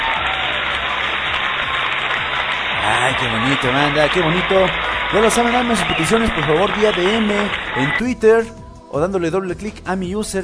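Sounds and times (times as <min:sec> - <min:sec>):
small ovation from an audience: 0:00.0 - 0:08.0
speech: 0:02.8 - 0:10.4.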